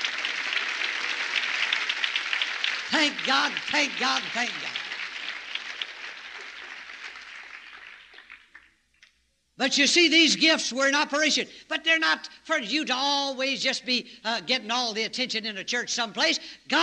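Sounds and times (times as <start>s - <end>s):
audience clapping: 0.0s - 9.2s
speech: 2.9s - 4.8s, 9.6s - 16.8s.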